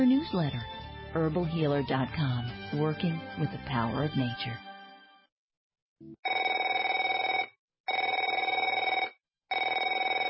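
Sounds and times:
speech: 0:00.0 - 0:04.6, 0:06.0 - 0:06.3
telephone ringing: 0:06.2 - 0:10.2.

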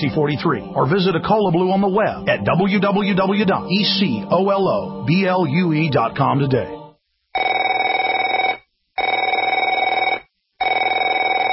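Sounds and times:
speech: 0:00.0 - 0:06.8
telephone bell ringing: 0:07.4 - 0:11.5.

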